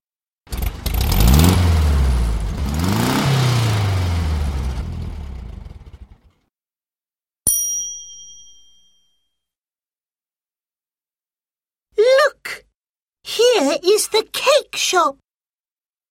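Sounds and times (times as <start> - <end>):
car engine revving: 0.5 - 6.3
bright ding: 7.5 - 9.4
speech: 13.6 - 15.2.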